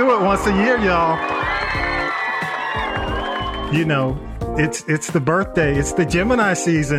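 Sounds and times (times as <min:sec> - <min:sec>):
speech: 0:00.0 - 0:01.4, 0:03.7 - 0:06.9
applause and cheering sound effect: 0:00.0 - 0:04.4.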